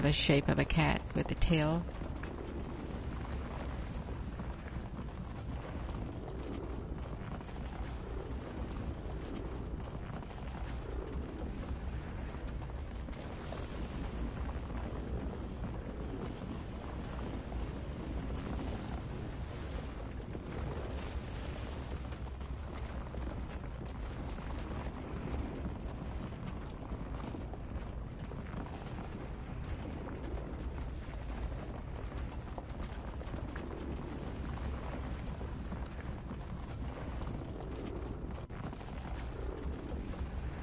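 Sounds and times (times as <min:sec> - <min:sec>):
speech: 0:00.0 - 0:02.0
volcano erupting after a series of earthquakes: 0:00.0 - 0:40.6.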